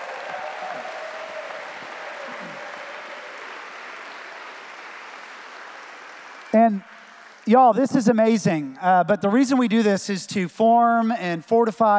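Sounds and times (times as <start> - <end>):
audience applause: 0.0 - 8.7
speech: 6.5 - 11.9.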